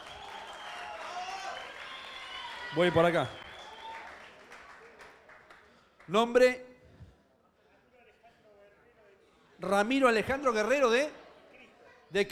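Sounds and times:
audience applause: 0.0s - 5.6s
speech: 2.7s - 3.4s, 6.1s - 6.7s, 9.6s - 11.2s, 12.1s - 12.3s.

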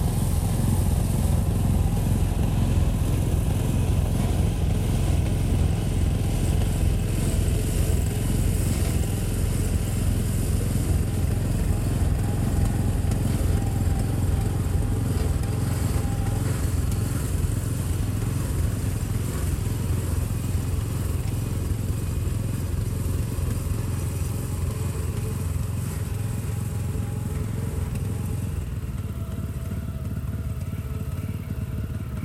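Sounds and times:
threshing machine engine drone: 0.0s - 32.2s.

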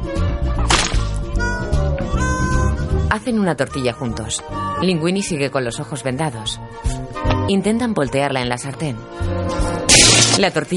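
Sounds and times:
steady music: 0.0s - 10.7s
tomato squashed by hand in an animated comedy scene: 0.6s - 1.3s, 9.9s - 10.5s
speech: 3.1s - 10.7s.

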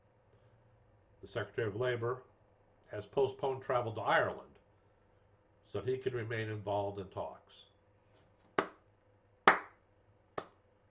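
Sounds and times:
speech: 1.2s - 2.3s, 2.9s - 4.5s, 5.7s - 7.7s
golf clap: 8.6s - 8.8s, 9.5s - 9.8s, 10.4s - 10.6s.

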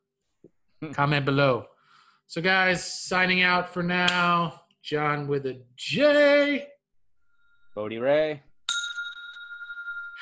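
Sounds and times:
speech: 0.8s - 1.7s, 2.3s - 6.7s, 7.8s - 8.5s
rusty sleigh bell ringing: 8.7s - 10.1s.

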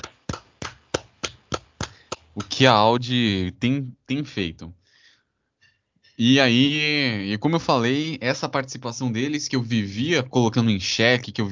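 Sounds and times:
hand clapping: 0.0s - 2.7s
speech: 2.4s - 4.8s, 6.2s - 11.5s.

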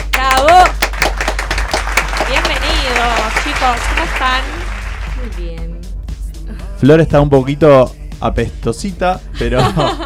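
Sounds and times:
loud applause welcoming guests: 0.7s - 5.2s
speech: 3.5s - 4.6s, 6.8s - 10.0s
laughter: 9.4s - 10.0s.

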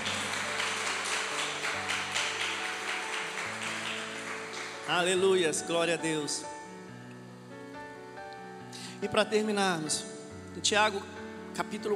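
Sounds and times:
audience applause: 0.0s - 5.3s
speech: 4.9s - 6.8s, 9.0s - 11.9s.

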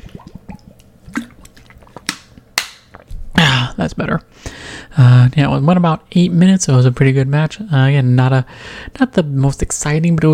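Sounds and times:
sipping a drink of water: 0.0s - 4.9s
speech: 3.8s - 10.3s.

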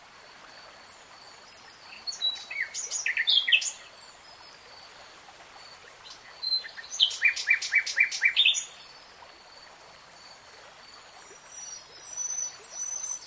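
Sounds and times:
soft background hiss: 0.0s - 13.2s
nightingale singing: 1.9s - 3.9s, 6.0s - 8.8s, 11.5s - 13.2s.

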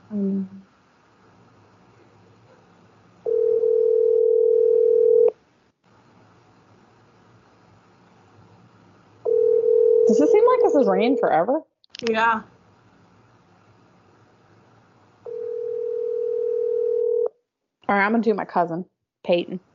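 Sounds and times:
faint hiss: 0.0s - 19.7s
speech: 0.1s - 0.6s, 10.8s - 12.5s, 17.9s - 19.7s
phone ringback tone while calling: 3.2s - 5.3s, 9.3s - 10.3s, 15.3s - 17.3s.

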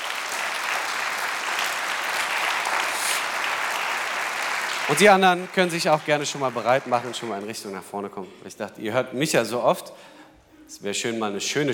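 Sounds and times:
crowd applause: 0.0s - 7.8s
speech: 4.9s - 11.7s.

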